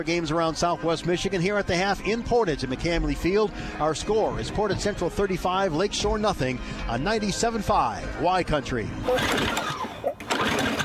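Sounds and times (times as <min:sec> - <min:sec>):
speech: 0:00.0 - 0:09.8
old lawnmower engine barely running: 0:09.0 - 0:10.8.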